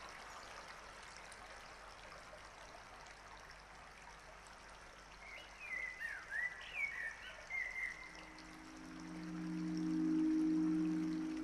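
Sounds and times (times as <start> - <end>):
bird singing soft sliding whistled notes: 5.3 - 11.4.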